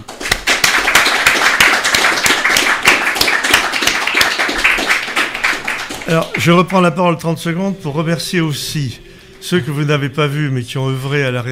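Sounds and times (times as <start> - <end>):
audience applause: 0.0 - 6.6
speech: 6.1 - 11.5.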